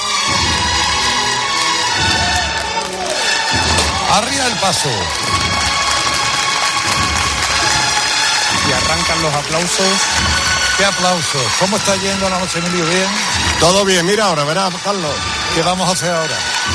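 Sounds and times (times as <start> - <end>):
marching procession band playing: 0.0 - 16.7
speech: 4.2 - 5.8, 9.2 - 16.7.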